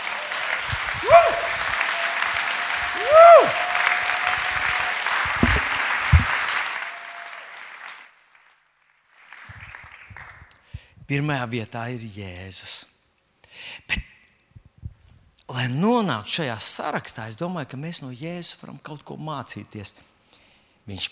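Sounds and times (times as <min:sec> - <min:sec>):
applause: 0:00.0 - 0:10.8
speech: 0:11.1 - 0:12.9, 0:13.6 - 0:14.1, 0:15.5 - 0:20.1, 0:20.8 - 0:21.1.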